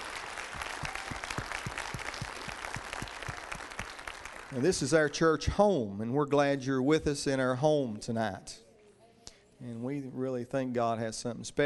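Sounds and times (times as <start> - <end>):
church congregation clapping to welcome guests at an evening service: 0.0 - 5.2
speech: 4.5 - 8.6, 9.6 - 11.6.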